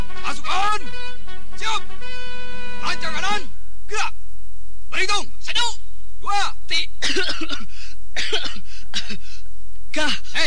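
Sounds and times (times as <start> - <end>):
speech: 0.3 - 4.2, 5.0 - 9.2, 10.0 - 10.4
soldier standing in formation coughing harshly: 7.0 - 9.4.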